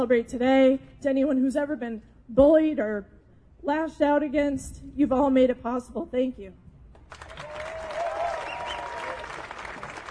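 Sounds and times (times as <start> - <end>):
speech: 0.0 - 7.2
crowd applauding: 7.0 - 10.0
faint whistle or cheer: 7.4 - 9.3.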